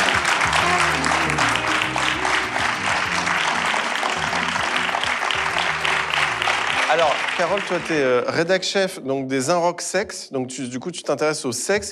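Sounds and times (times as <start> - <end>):
low stepping musical line: 0.0 - 7.8
crowd clapping: 0.0 - 8.4
speech: 7.0 - 11.8.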